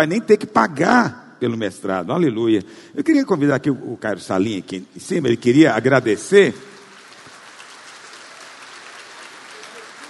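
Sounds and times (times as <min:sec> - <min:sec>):
speech: 0:00.0 - 0:06.7
audience applause: 0:06.1 - 0:10.0.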